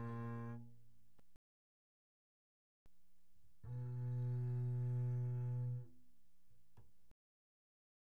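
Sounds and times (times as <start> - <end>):
double bass arco pianissimo on the A string: 0.0 - 1.0, 3.4 - 7.0.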